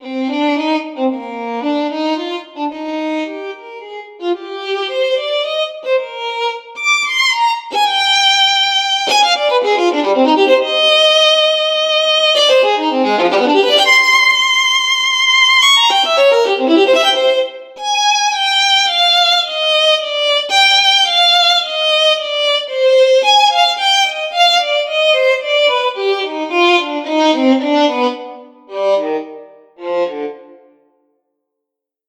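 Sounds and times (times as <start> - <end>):
violin: 0.0 - 30.9.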